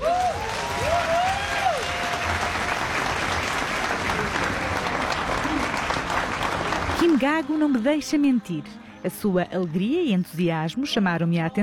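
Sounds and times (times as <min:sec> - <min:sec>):
voices cheering: 0:00.0 - 0:03.3
audience applause for dancers: 0:00.0 - 0:07.9
speech: 0:07.2 - 0:11.6.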